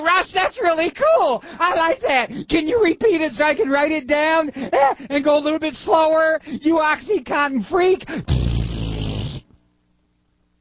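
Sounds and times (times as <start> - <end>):
speech: 0.2 - 8.5
mouth imitating fart noise: 8.1 - 9.6.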